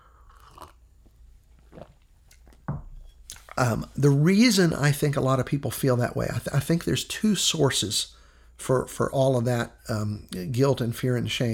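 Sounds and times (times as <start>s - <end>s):
sipping coffee: 0.0s - 3.9s
speech: 3.6s - 11.5s.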